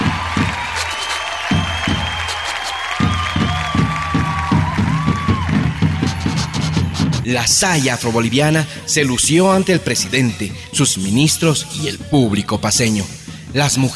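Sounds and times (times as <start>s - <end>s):
audience applause and cheering: 0.0s - 10.0s
speech: 7.3s - 13.9s.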